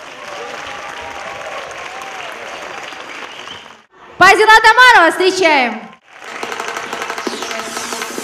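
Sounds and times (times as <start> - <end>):
loud audience applause in hall: 0.0 - 3.9, 6.0 - 7.5
speech: 4.2 - 5.9.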